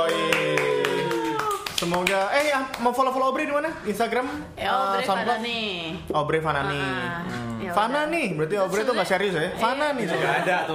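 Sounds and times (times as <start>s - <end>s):
crowd audience clapping hands: 0.0s - 3.2s
speech: 1.8s - 10.7s.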